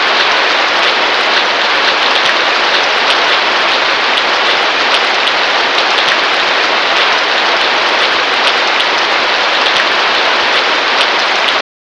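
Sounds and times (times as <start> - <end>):
rain: 0.0 - 11.6.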